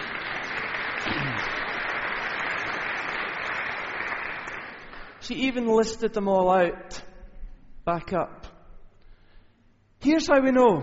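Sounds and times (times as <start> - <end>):
crowd applause: 0.0 - 5.2
low vocal murmur: 1.0 - 1.6
speech: 5.3 - 7.0, 7.9 - 8.4, 10.0 - 10.8.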